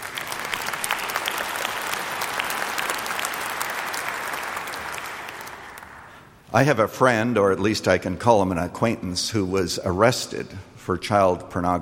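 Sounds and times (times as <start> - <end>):
audience applause: 0.0 - 6.2
speech: 6.5 - 11.8.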